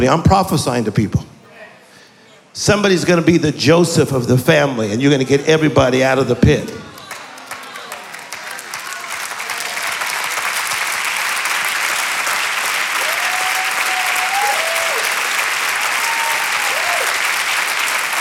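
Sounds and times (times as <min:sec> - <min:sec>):
speech: 0:00.0 - 0:01.3, 0:02.6 - 0:06.8
audience clapping hands: 0:06.5 - 0:18.2.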